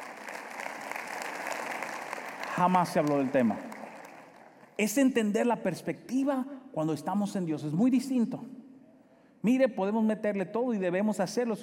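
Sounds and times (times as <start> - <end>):
applause: 0.0 - 4.9
speech: 2.6 - 3.7, 4.8 - 8.6, 9.4 - 11.6.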